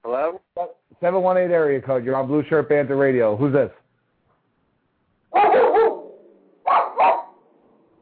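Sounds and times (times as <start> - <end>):
speech: 0.3 - 3.8
dog barking: 5.3 - 7.4.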